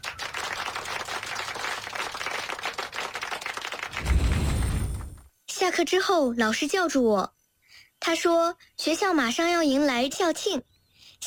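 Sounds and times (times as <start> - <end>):
classroom applause: 0.0 - 4.4
speech: 5.7 - 7.4, 8.1 - 11.2.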